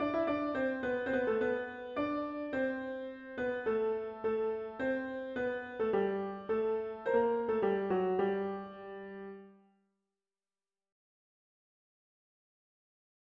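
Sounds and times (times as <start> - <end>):
piano: 0.0 - 9.8.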